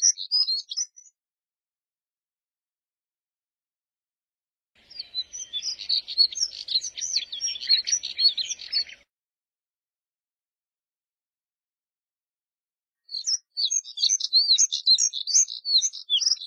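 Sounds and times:
Moussier's redstart twittering warble: 0:04.8 - 0:09.0, 0:13.1 - 0:16.4.

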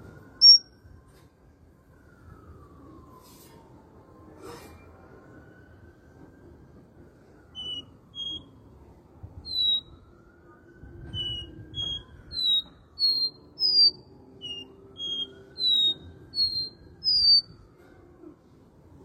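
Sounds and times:
copper seedeater whistled song: 0:00.4 - 0:00.7, 0:07.5 - 0:08.5, 0:09.5 - 0:09.9, 0:11.1 - 0:17.5.

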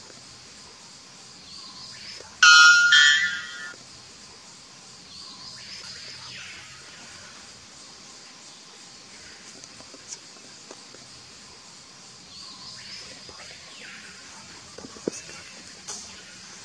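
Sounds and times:
araponga bellbird calling in the Amazon: 0:02.4 - 0:03.7.

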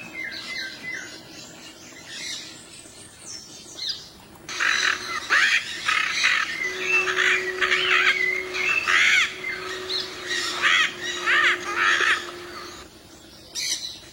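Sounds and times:
yellow-collared macaw giving harsh arched squawks: 0:04.5 - 0:12.9.

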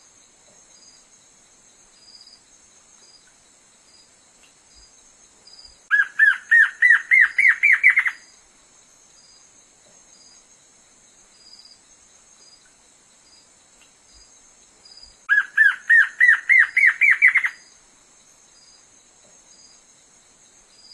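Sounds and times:
black-crested antshrike song of accelerating arched notes: 0:05.8 - 0:08.3, 0:14.9 - 0:17.7.

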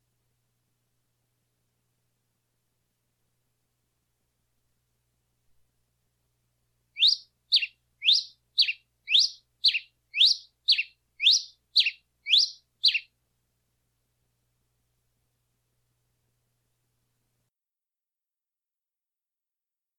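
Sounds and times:
bird song of paired high notes: 0:07.0 - 0:13.1.

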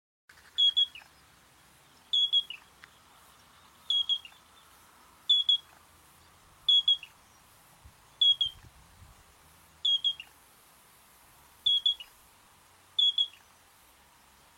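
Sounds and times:
Yellow-breasted Crake giving short high whistled notes: 0:00.6 - 0:01.1, 0:02.1 - 0:02.6, 0:03.9 - 0:04.4, 0:05.3 - 0:05.7, 0:06.7 - 0:07.2, 0:08.2 - 0:08.6, 0:09.8 - 0:10.3, 0:11.6 - 0:12.1, 0:13.0 - 0:13.5.

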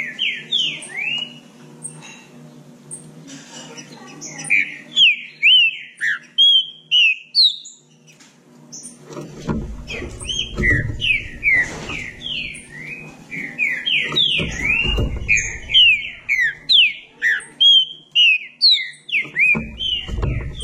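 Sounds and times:
green-winged saltator singing: 0:04.3 - 0:08.1, 0:09.9 - 0:20.6
low rumbling: 0:09.2 - 0:16.7, 0:19.4 - 0:20.6.

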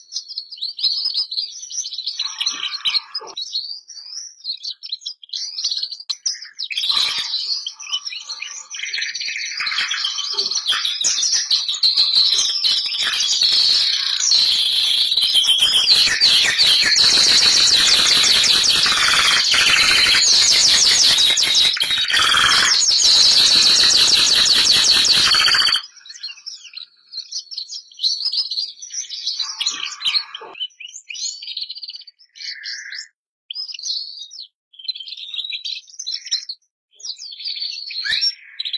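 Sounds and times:
canary song: 0:01.8 - 0:03.4, 0:06.1 - 0:26.5
sharp clicks: 0:15.8 - 0:25.8.

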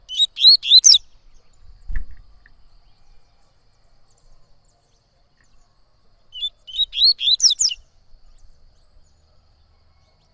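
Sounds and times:
coleiro-baiano whistled song: 0:00.0 - 0:01.7, 0:06.3 - 0:07.9.

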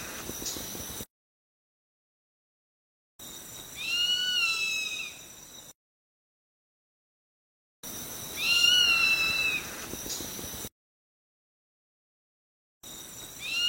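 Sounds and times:
zone-tailed hawk giving plaintive whistled screams: 0:03.8 - 0:05.2, 0:08.4 - 0:09.7, 0:13.4 - 0:13.6.

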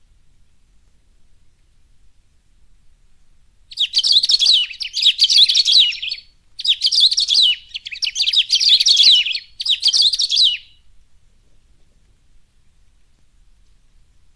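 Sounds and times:
Saffron-billed sparrow singing rapid tangled twittering phrases: 0:03.7 - 0:10.8.

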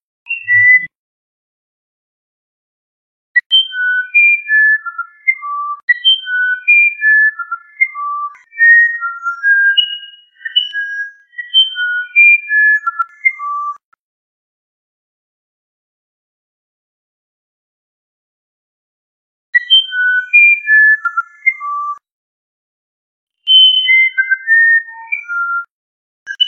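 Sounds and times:
musician wren whistling a phrase: 0:00.3 - 0:00.9, 0:03.4 - 0:13.8, 0:19.6 - 0:22.0, 0:23.5 - 0:25.7.

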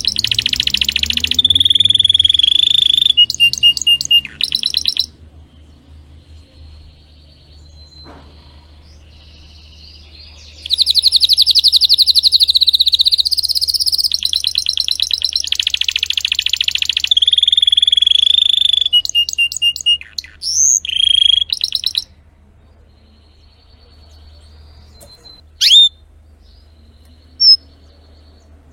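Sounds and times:
Spanish Timbrado canary song: 0:00.0 - 0:28.7.

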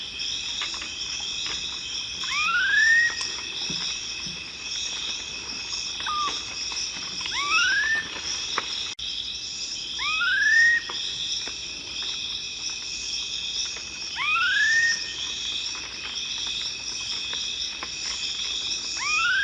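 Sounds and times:
high insect drone: 0:00.0 - 0:19.4
black-faced cotinga whistling: 0:02.2 - 0:03.8, 0:06.0 - 0:06.4, 0:07.3 - 0:08.3, 0:10.0 - 0:11.0, 0:14.2 - 0:15.2, 0:19.0 - 0:19.4.

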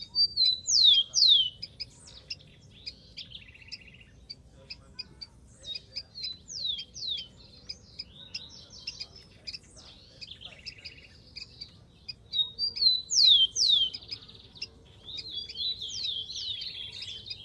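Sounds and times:
rufous-collared sparrow whistled song: 0:00.0 - 0:04.4, 0:05.6 - 0:17.4.

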